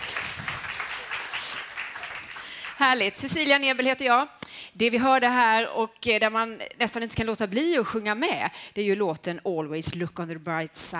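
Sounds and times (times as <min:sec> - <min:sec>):
crowd applauding warmly: 0:00.0 - 0:03.0
speech: 0:02.8 - 0:10.9.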